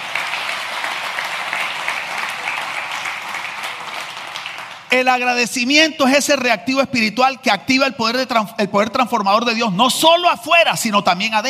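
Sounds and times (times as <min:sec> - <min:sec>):
loud applause: 0:00.0 - 0:05.1
speech: 0:04.9 - 0:11.4.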